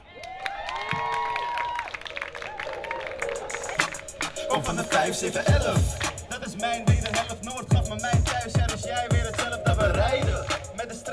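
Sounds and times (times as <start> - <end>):
audience applause: 0.2 - 4.3
speech: 4.5 - 10.4.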